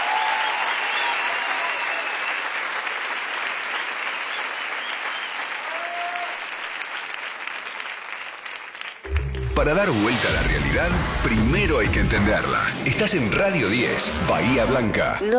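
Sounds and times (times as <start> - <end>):
loud applause from audience: 0.0 - 9.4
speech: 9.6 - 15.3.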